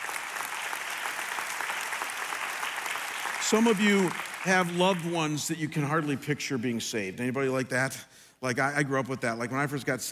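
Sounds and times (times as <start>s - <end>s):
audience clapping: 0.0s - 5.8s
speech: 3.5s - 10.0s.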